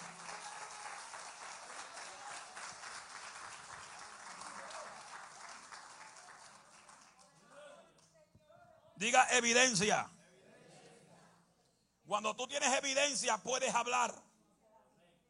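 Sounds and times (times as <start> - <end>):
loud audience applause: 0.0 - 7.4
speech: 9.0 - 10.1, 12.1 - 14.2.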